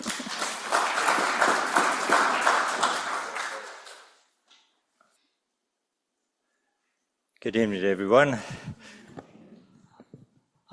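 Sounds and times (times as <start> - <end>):
audience clapping to welcome debaters: 0.0 - 4.4
speech: 7.4 - 9.0.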